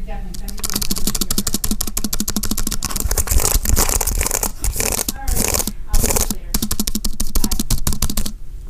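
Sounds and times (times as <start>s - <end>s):
typing on an Apple computer keyboard: 0.4s - 8.4s.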